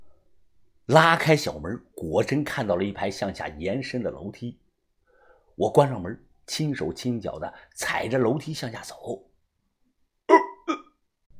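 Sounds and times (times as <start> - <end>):
speech: 0.9 - 4.6, 5.6 - 9.3
hiccup in the dark: 10.3 - 11.0.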